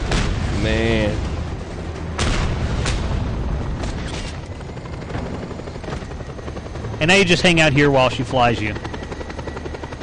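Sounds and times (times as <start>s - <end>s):
grenade explosions in a helicopter combat video game: 0.0s - 6.2s
helicopter rotor roar in a video game: 0.0s - 10.0s
speech: 0.6s - 1.3s, 7.0s - 8.9s.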